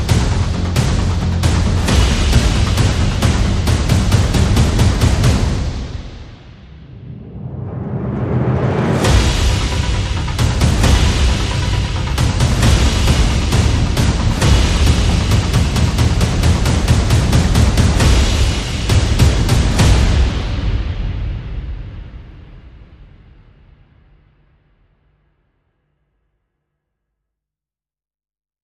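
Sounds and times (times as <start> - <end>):
rhythmic pulses: 0.0 - 20.6
percussion: 0.0 - 24.1.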